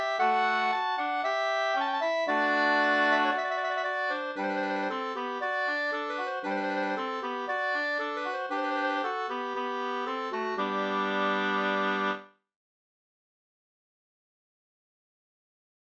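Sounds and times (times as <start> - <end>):
two-part wedding march: 0.0 - 12.2.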